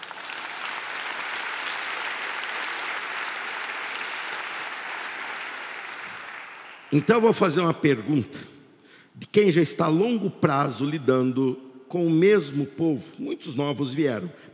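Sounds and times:
applause: 0.0s - 7.4s
speech: 6.9s - 8.5s, 9.3s - 14.5s.

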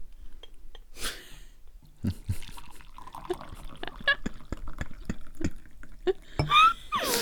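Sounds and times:
tea being poured into a cup: 2.1s - 6.6s.

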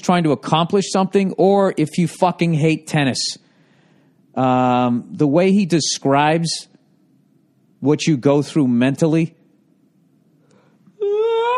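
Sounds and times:
speech: 0.0s - 3.4s, 4.4s - 6.7s, 7.8s - 9.4s
person yawning: 10.9s - 11.5s.

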